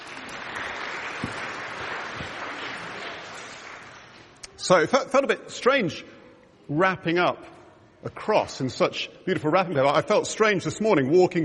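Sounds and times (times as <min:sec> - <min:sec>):
audience applause: 0:00.0 - 0:04.4
speech: 0:04.7 - 0:11.4.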